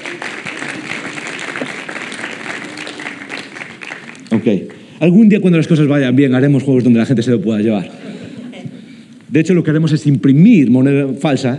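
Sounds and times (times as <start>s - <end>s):
audience applause: 0.0s - 4.9s
speech: 4.3s - 8.0s, 9.3s - 11.5s.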